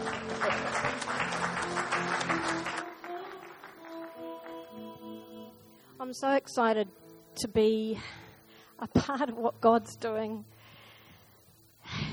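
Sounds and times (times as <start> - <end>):
audience applause: 0.0 - 5.2
soft sustained music: 0.0 - 12.1
speech: 6.1 - 8.2, 8.8 - 10.5.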